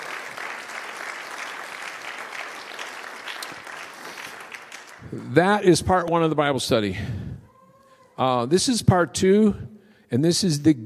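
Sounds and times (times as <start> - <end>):
audience clapping hands: 0.0 - 6.3
speech: 5.1 - 7.2, 8.2 - 10.8.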